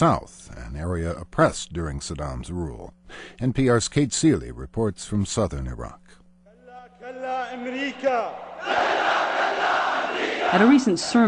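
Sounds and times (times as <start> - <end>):
speech: 0.0 - 6.1, 7.0 - 9.2, 10.5 - 11.2
large crowd chanting at a sermon: 7.5 - 11.2.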